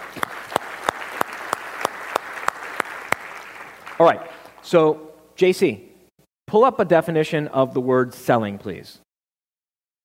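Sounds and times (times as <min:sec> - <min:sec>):
audience applause: 0:00.0 - 0:04.6
speech: 0:04.0 - 0:05.9, 0:06.5 - 0:09.0.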